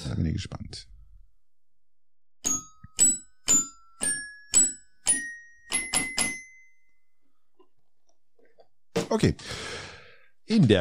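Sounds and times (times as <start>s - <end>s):
speech: 0.0s - 1.0s, 9.1s - 9.9s, 10.5s - 10.7s
bell-like chime jingle from a jingle machine: 2.4s - 7.1s.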